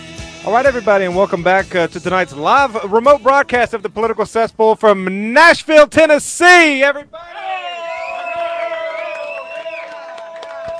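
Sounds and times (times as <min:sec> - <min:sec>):
speech: 0:00.4 - 0:07.5
high yells: 0:07.2 - 0:10.7
audience hollering at a live event in Nashville, Tennessee: 0:07.3 - 0:10.7.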